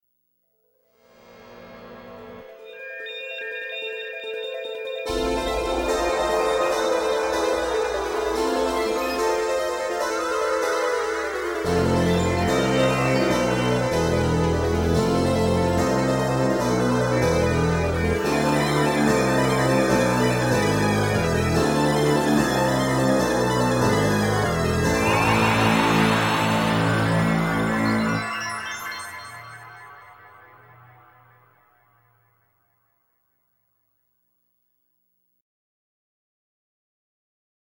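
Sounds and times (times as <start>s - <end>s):
chaotic new age music: 2.4s - 31.9s.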